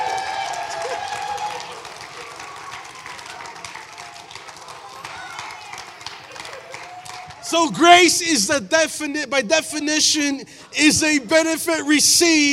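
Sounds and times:
audience hand clapping: 0.0s - 7.4s
speech: 7.5s - 12.5s.

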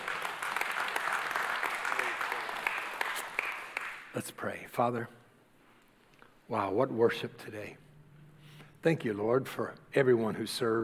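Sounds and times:
crowd clapping: 0.0s - 4.3s
speech: 4.2s - 5.2s, 6.5s - 7.8s, 8.8s - 10.8s.

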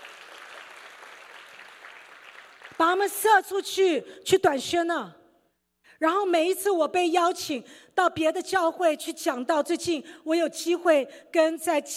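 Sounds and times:
church congregation applauding the Guangdong group: 0.0s - 2.9s
speech: 2.8s - 5.2s, 6.0s - 11.9s.

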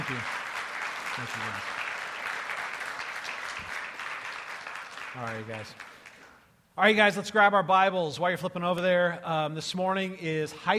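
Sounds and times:
audience applause: 0.0s - 6.4s
speech: 1.2s - 1.8s, 5.2s - 5.9s, 6.8s - 10.7s.

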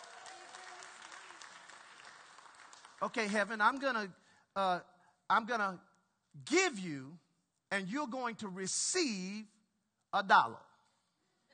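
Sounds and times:
audience clapping: 0.0s - 4.1s
speech: 3.0s - 10.6s.

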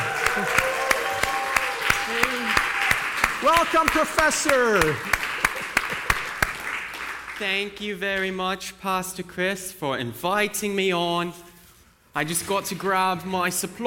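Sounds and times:
audience applause and cheering: 0.0s - 7.4s
speech: 3.4s - 5.2s, 7.4s - 11.4s, 12.2s - 13.8s.

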